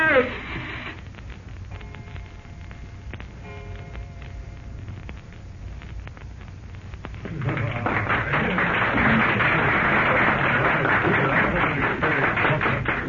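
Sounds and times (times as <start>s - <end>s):
faint murmur of voices: 7.2s - 13.0s
group of men applauding: 7.2s - 13.0s.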